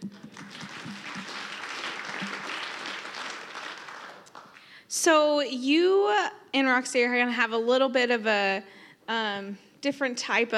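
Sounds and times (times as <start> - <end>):
crowd applauding: 0.0 - 4.8
speech: 4.9 - 10.5.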